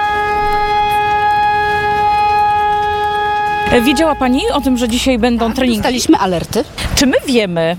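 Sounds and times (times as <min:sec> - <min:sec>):
civil defense alarm siren wailing: 0:00.0 - 0:06.0
speech: 0:03.7 - 0:07.7.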